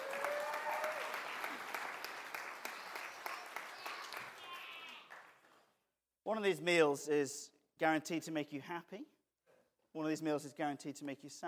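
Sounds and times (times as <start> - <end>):
audience applause: 0.0 - 5.6
speech: 6.3 - 9.2, 10.0 - 11.4.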